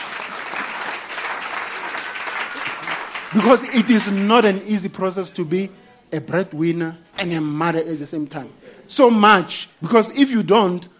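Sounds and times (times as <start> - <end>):
audience clapping hands: 0.0 - 4.6
speech: 3.3 - 10.9.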